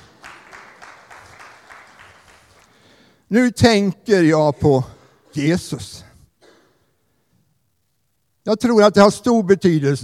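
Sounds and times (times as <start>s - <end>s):
applause: 0.0s - 3.0s
speech: 3.3s - 6.1s, 8.4s - 10.0s.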